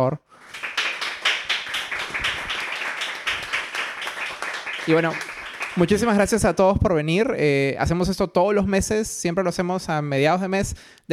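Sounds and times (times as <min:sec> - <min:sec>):
speech: 0:00.0 - 0:00.2, 0:04.8 - 0:11.1
audience applause: 0:00.4 - 0:06.2.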